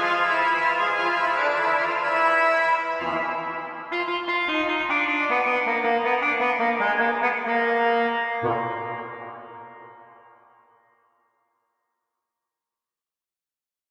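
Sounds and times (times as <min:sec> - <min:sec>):
Egyptian folk tune: 0:00.0 - 0:09.9.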